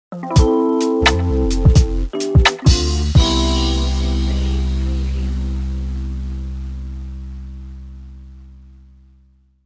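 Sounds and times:
jazzy lo-fi hip hop logo jingle: 0.2s - 7.2s.

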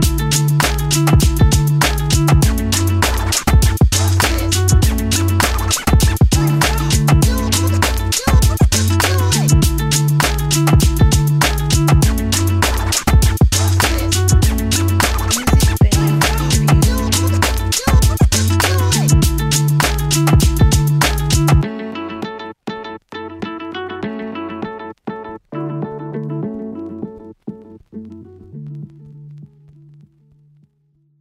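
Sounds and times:
hip hop music: 0.0s - 22.4s.

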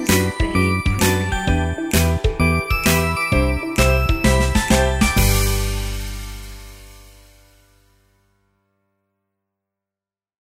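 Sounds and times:
upbeat happy piano: 0.0s - 6.9s.

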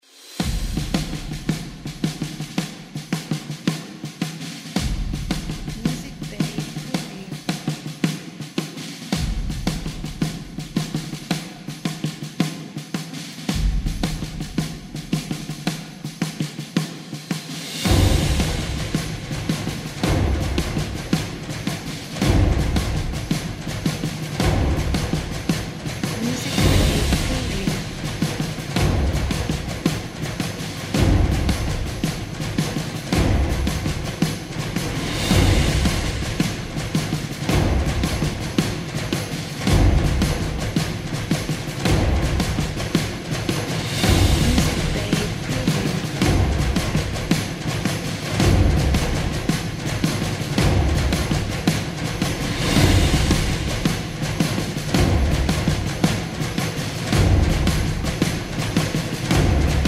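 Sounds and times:
military epic percussion: 0.0s - 59.8s.

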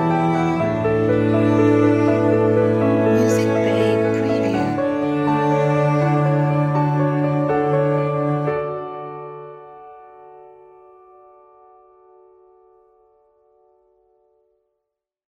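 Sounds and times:
romantic cinematic cello: 0.0s - 10.6s
romantic cinematic piano: 0.0s - 14.3s.

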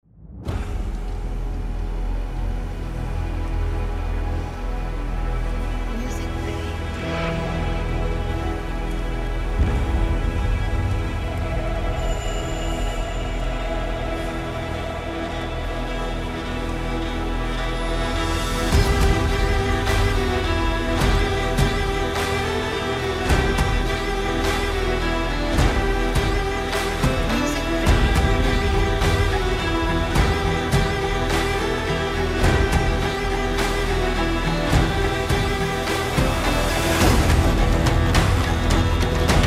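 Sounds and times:
Scandinavian epic cinematic music: 0.0s - 39.4s.

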